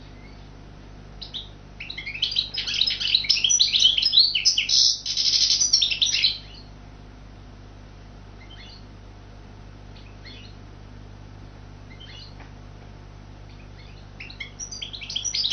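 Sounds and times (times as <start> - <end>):
goldfinch singing: 1.2 - 6.7, 8.4 - 8.8, 10.0 - 10.6, 11.9 - 12.4, 13.5 - 15.5.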